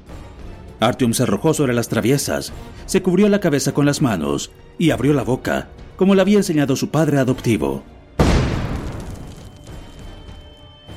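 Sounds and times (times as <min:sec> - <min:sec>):
speech: 0:00.8 - 0:08.0
grenade explosion: 0:08.2 - 0:09.9.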